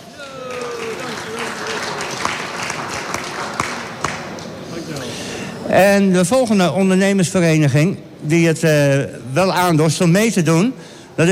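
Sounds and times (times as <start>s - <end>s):
crowd clapping: 0.0s - 4.6s
speech: 5.7s - 11.3s.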